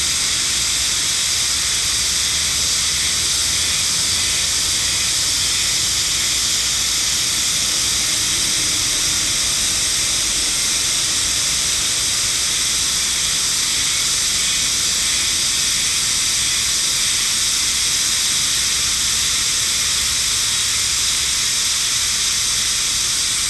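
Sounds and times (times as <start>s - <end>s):
Hime-harusemi cicada chorus: 0.0s - 23.4s.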